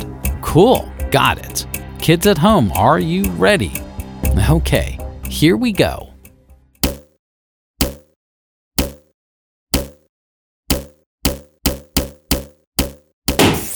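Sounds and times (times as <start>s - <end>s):
speech: 0.5s - 3.8s, 4.4s - 6.1s
ball bouncing to a steady beat in a music lesson: 6.8s - 7.2s, 7.8s - 8.2s, 8.8s - 9.1s, 9.7s - 10.1s, 10.7s - 13.7s
air hissing from a ball going flat: 13.4s - 13.7s.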